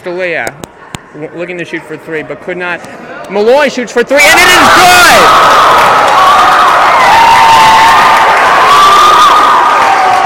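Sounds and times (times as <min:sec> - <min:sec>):
speech: 0:00.0 - 0:07.2
basketball crowd cheering: 0:04.2 - 0:10.2.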